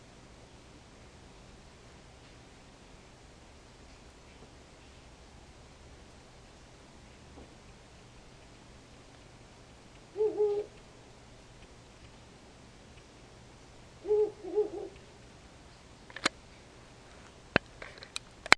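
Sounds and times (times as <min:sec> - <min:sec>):
owl hooting: 0:10.1 - 0:10.8, 0:14.0 - 0:15.2.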